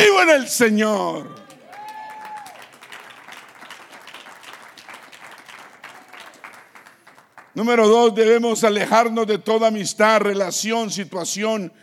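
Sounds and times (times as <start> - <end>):
speech: 0.0 - 1.4, 7.6 - 11.8
voices cheering: 0.0 - 4.1, 5.6 - 6.6
audience applause: 1.3 - 7.6.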